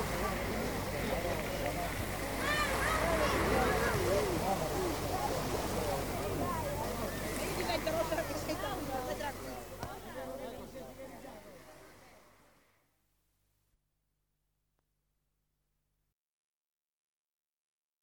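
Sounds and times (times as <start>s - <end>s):
crowd on a beach: 0.0s - 12.6s
sea at a beach: 0.0s - 13.7s.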